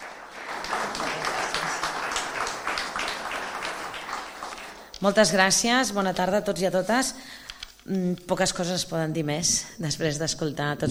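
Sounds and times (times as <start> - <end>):
crowd applauding: 0.0 - 4.9
speech: 5.0 - 10.8.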